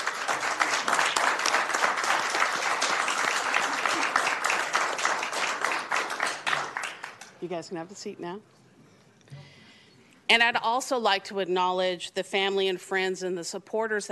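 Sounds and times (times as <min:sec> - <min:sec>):
audience applause: 0:00.0 - 0:07.2
speech: 0:07.4 - 0:08.6, 0:10.3 - 0:14.0.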